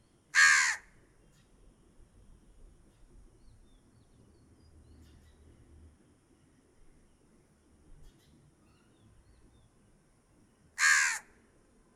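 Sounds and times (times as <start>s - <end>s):
crow cawing: 0.4s - 0.9s, 10.8s - 11.3s.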